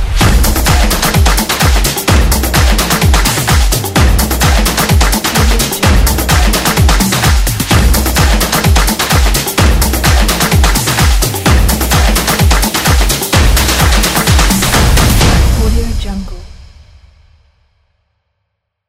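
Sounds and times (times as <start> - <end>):
wild drums: 0.0 - 17.5.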